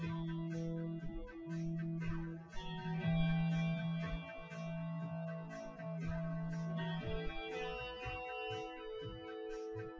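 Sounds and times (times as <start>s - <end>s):
drums: 0.0s - 9.9s
synthesizer: 0.0s - 9.9s.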